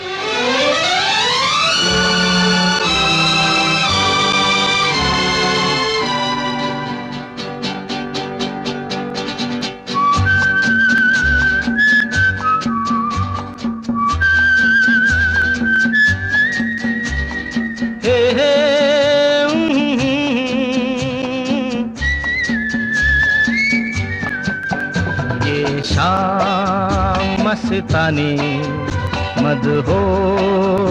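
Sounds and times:
clear high whistled melody: 0.0s - 7.2s, 9.8s - 19.9s, 21.5s - 26.9s
sweeping orchestral chords of a Hindi film song intro: 0.0s - 8.3s
steady rhythmic beat: 0.0s - 30.9s.

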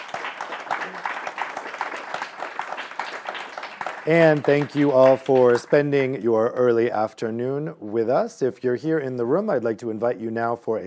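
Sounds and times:
round of applause for panelists: 0.0s - 6.2s
speech: 4.0s - 10.8s.

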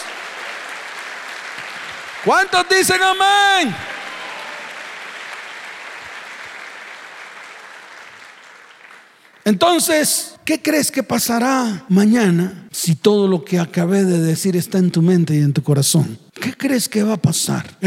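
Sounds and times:
audience applauding: 0.0s - 9.5s
speech: 2.2s - 3.9s, 9.5s - 17.8s.

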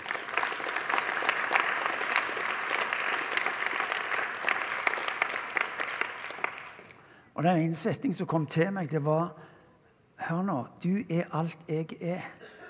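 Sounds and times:
audience clapping: 0.0s - 7.0s
speech: 7.4s - 9.4s, 10.3s - 12.4s.

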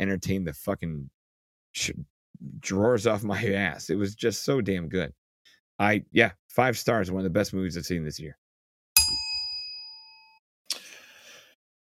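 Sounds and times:
speech: 0.0s - 5.2s, 5.8s - 8.4s
timer ding: 9.0s - 10.4s.

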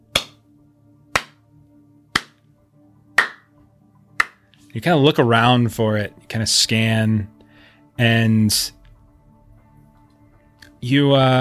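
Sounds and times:
sharp loud claps: 0.1s - 0.4s, 1.1s - 1.4s, 2.2s - 2.4s, 3.2s - 3.5s, 4.2s - 4.4s
speech: 4.7s - 7.4s, 8.0s - 8.8s, 10.8s - 11.4s.

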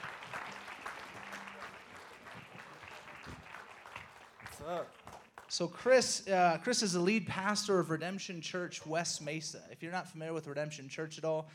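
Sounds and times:
audience applause: 0.0s - 5.5s
speech: 4.6s - 11.5s.

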